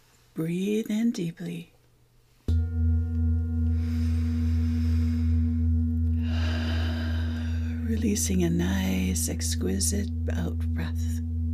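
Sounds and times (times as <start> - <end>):
speech: 0.4 - 1.7, 8.0 - 11.2
tapped old Tibetan singing bowl ringing: 2.5 - 11.5.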